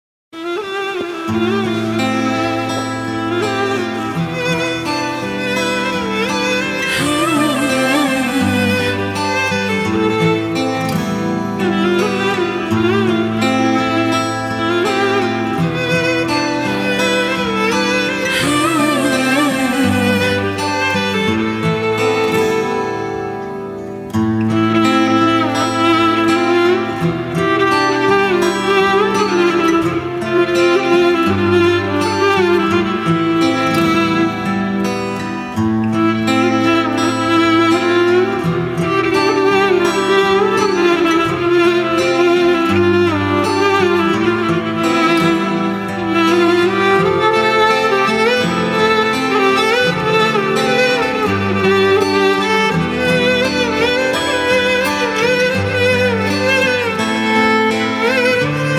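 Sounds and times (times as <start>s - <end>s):
guitar: 0.3s - 58.7s
violin: 0.3s - 58.7s.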